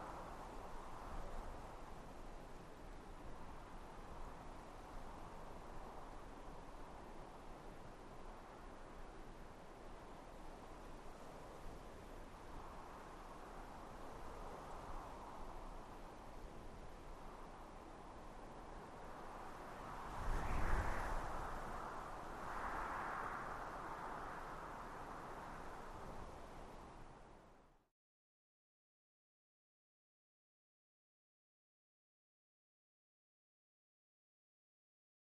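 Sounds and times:
gentle prairie wind: 0.0s - 27.9s.

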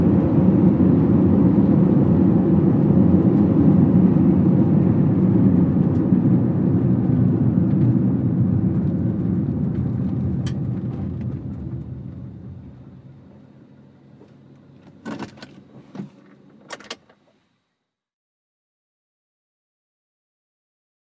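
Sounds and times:
compact car driving at 55 to 65 mph: 0.0s - 16.6s.

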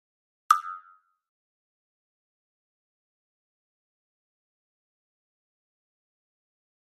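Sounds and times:
high-pitched pop tap: 0.5s - 1.1s.

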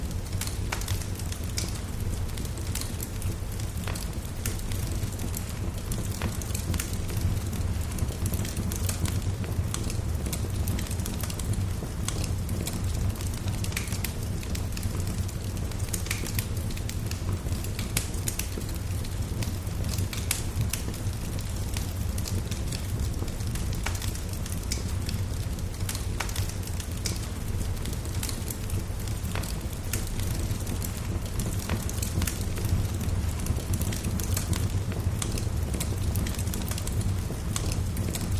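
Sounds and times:
small fireplace fire: 0.0s - 38.3s.

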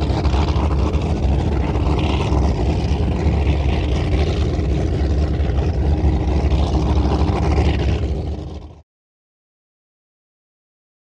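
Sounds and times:
offshore power boat idling and moving away: 0.0s - 8.8s.

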